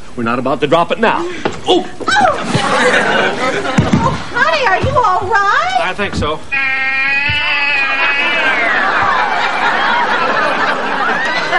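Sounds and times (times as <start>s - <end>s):
speech: 0.2s - 6.8s
laughter: 2.2s - 4.6s, 6.8s - 11.5s
cat crying after being stepped on: 6.5s - 8.8s.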